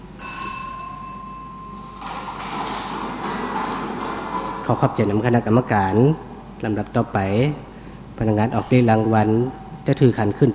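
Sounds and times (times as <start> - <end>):
bell-like ring of a lottery draw machine: 0.2 - 2.1
lottery balls rolling and rattling in a draw machine: 1.9 - 5.4
speech: 4.7 - 10.5.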